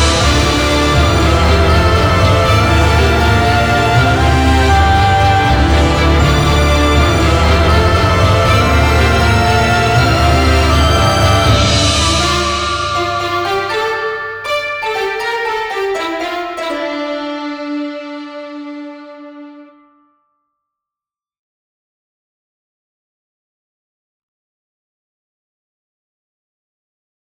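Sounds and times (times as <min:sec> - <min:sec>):
standard musical ending: 0:00.0 - 0:19.9.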